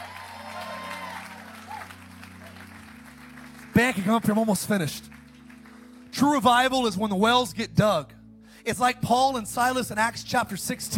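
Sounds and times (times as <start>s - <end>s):
audience clapping: 0.0s - 6.7s
speech: 3.8s - 5.2s, 6.2s - 10.9s.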